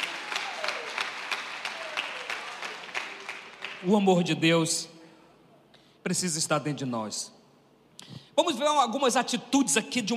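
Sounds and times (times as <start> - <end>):
audience applause: 0.0 - 3.9
speech: 3.8 - 4.9, 6.0 - 7.4, 8.1 - 10.1.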